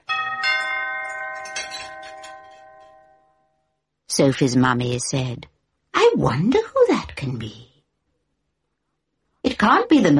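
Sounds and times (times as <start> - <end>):
doorbell ringing: 0.0 - 3.7
speech: 4.2 - 5.5, 6.2 - 7.7, 9.6 - 10.1.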